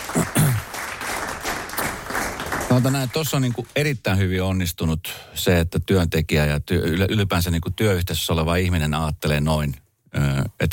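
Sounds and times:
applause sound effect from studio: 0.0s - 4.0s
speech: 2.8s - 10.7s.

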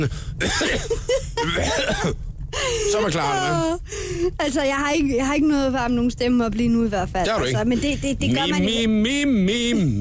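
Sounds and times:
speech: 0.0s - 10.0s
cough: 0.4s - 2.2s.

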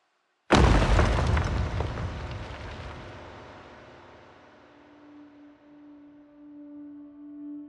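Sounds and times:
massive boulder falling with loud boom: 0.5s - 4.5s.

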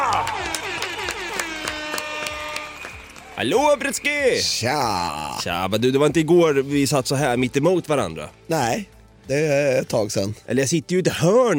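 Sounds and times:
applause sound effect: 0.0s - 4.5s
speech: 3.4s - 11.5s.

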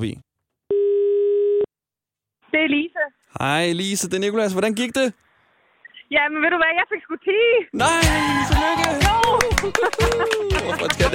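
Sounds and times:
speech: 0.0s - 0.2s, 2.5s - 5.2s, 6.1s - 11.1s
telephone dial tone while calling: 0.7s - 1.7s
laughter: 8.4s - 11.1s.

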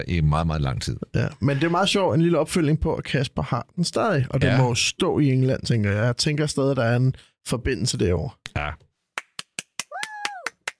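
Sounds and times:
speech: 0.0s - 8.8s
person clapping: 9.2s - 10.7s.

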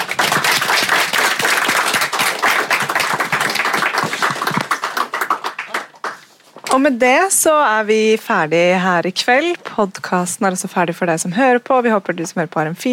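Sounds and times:
audience applause: 0.0s - 6.3s
speech: 6.8s - 12.9s.

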